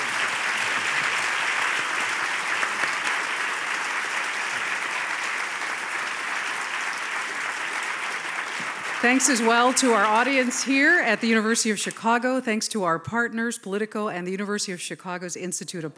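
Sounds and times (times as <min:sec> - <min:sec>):
round of applause: 0:00.0 - 0:11.2
speech: 0:09.0 - 0:15.9.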